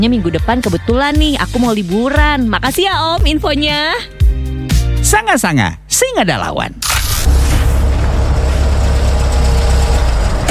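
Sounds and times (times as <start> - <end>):
speech: 0.0 - 6.9
car engine idling while being parked: 7.0 - 10.4.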